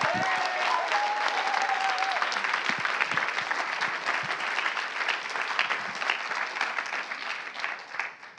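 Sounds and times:
crowd applauding: 0.0s - 8.3s.

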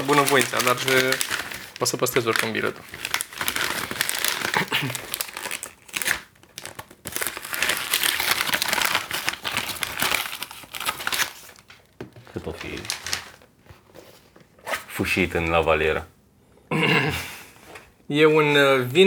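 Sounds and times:
plastic packaging wrapper being torn open: 0.0s - 13.5s
speech: 0.1s - 3.2s, 4.8s - 5.1s, 12.4s - 13.0s, 15.0s - 16.1s, 16.7s - 17.3s, 18.1s - 19.0s.

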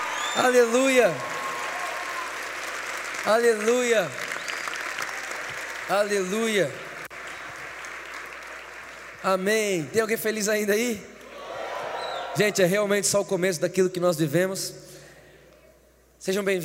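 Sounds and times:
audience applauding: 0.0s - 9.4s
speech: 0.4s - 1.3s, 3.2s - 4.2s, 5.9s - 6.9s, 9.2s - 11.1s, 12.4s - 14.8s, 16.2s - 16.6s.

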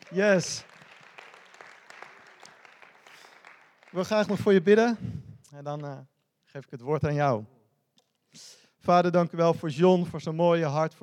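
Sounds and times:
audience applause: 0.0s - 4.7s
speech: 0.1s - 0.7s, 3.9s - 7.6s, 8.3s - 11.0s.

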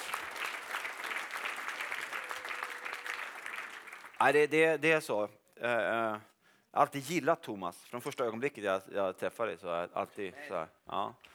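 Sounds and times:
audience applause: 0.0s - 4.2s
speech: 4.2s - 11.3s.

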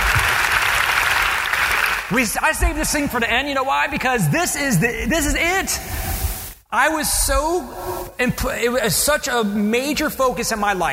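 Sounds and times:
audience applause: 0.0s - 2.2s
speech: 2.1s - 6.1s, 6.7s - 10.9s.

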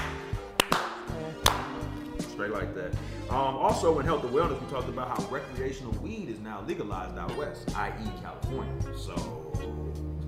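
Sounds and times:
slow clap: 0.0s - 2.3s
speech: 2.5s - 10.2s.

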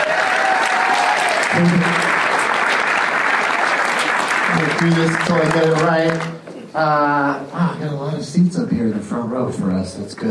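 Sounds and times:
audience applause: 0.0s - 6.5s
speech: 1.6s - 2.1s, 4.8s - 10.2s.

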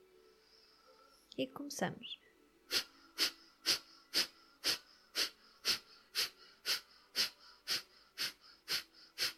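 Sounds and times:
speech: 1.4s - 2.9s
quick forceful nose breaths during a guided breathing exercise: 2.7s - 9.3s.

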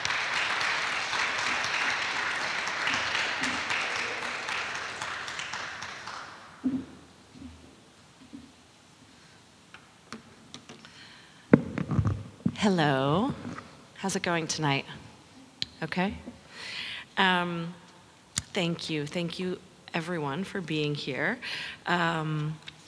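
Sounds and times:
audience applause at a museums conference lecture in Melbourne: 0.0s - 6.8s
speech: 12.6s - 13.4s, 14.0s - 15.0s, 15.8s - 16.3s, 17.2s - 17.8s, 18.6s - 22.7s.

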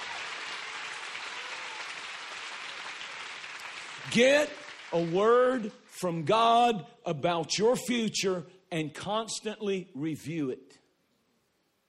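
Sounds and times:
audience clapping hands: 0.0s - 6.4s
speech: 4.0s - 10.8s.

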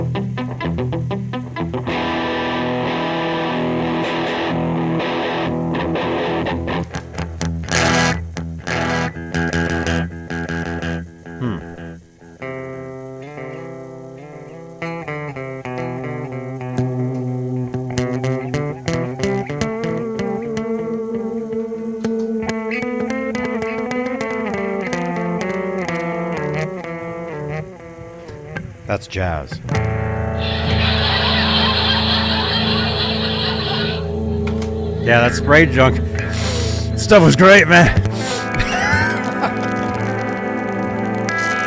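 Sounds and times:
overdriven electric guitar through amp: 0.0s - 41.6s
speech: 29.0s - 29.7s, 35.1s - 36.0s, 37.1s - 38.0s
laughter: 30.4s - 35.8s, 36.6s - 40.1s.

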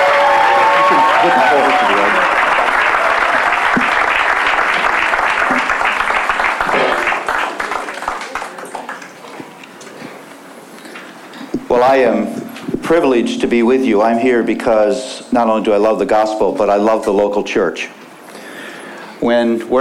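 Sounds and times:
church congregation applauding to welcome a guest preacher: 0.0s - 9.4s
speech: 12.9s - 18.0s, 19.2s - 19.7s.

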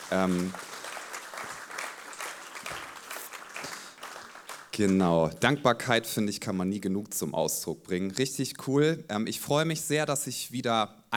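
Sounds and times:
audience applause: 0.0s - 5.2s
speech: 0.1s - 0.7s, 4.8s - 11.0s.

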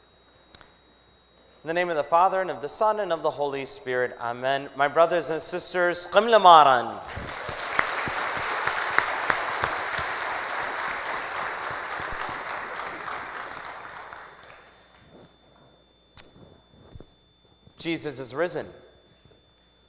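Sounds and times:
speech: 1.6s - 7.5s, 17.9s - 18.9s
audience clapping: 7.1s - 14.8s.

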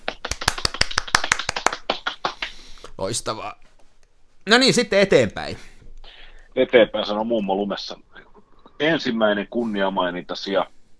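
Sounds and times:
applause of sharp crisp hand claps: 0.0s - 2.7s
speech: 3.0s - 3.6s, 4.4s - 5.7s, 6.6s - 8.1s, 8.8s - 10.7s.

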